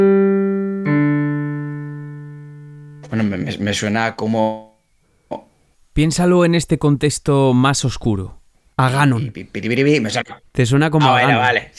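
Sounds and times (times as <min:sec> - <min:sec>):
piano playing a musical interval: 0:00.0 - 0:03.6
speech: 0:03.2 - 0:04.7, 0:06.0 - 0:11.7.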